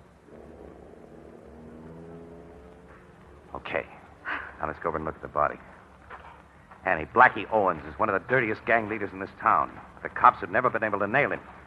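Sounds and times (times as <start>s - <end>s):
car driving away: 0.0s - 5.6s
speech: 3.6s - 4.0s, 4.6s - 5.8s, 6.8s - 11.5s.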